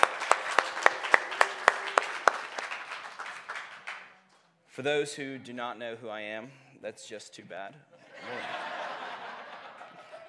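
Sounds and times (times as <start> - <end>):
audience applause: 0.0 - 4.2
speech: 4.8 - 8.8
laughter: 8.0 - 10.2.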